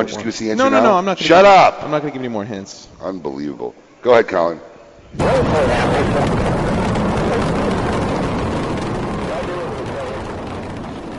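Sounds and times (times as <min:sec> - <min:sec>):
speech: 0:00.0 - 0:06.8
rocket launch roar: 0:05.2 - 0:11.1.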